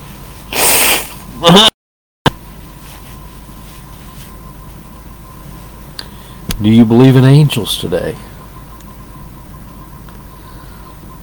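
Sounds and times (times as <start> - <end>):
person blowing nose: 0.5 - 1.2
speech: 6.6 - 8.3.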